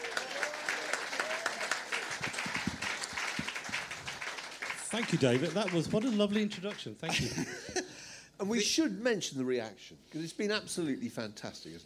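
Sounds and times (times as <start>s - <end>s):
audience clapping welcoming the author of a memoir: 0.0s - 7.4s
speech: 4.9s - 7.8s, 8.4s - 11.8s
laughter: 7.0s - 8.0s.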